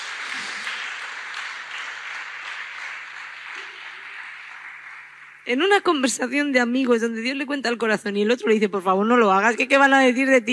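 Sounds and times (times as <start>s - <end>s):
audience applauding: 0.0s - 5.5s
speech: 5.5s - 10.5s.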